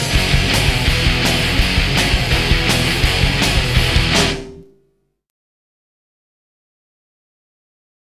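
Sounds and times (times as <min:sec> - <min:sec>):
party cheering yay: 0:00.1 - 0:04.5.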